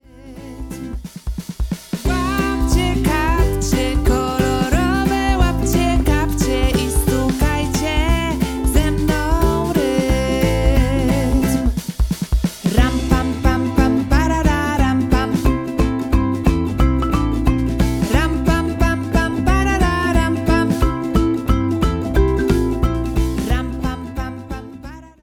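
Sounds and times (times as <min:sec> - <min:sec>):
vocal version of music: 0:00.0 - 0:01.0, 0:02.0 - 0:11.9, 0:12.6 - 0:25.2.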